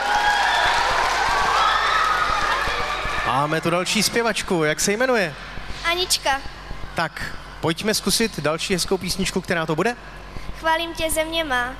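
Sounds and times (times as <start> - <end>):
audience applauding after a children's song: 0.0 - 4.1
speech: 3.3 - 11.7.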